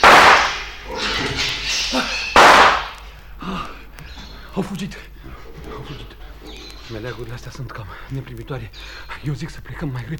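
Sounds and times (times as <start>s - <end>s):
gunshots: 0.0s - 0.8s, 2.2s - 3.0s
speech: 4.6s - 5.2s, 6.9s - 10.1s.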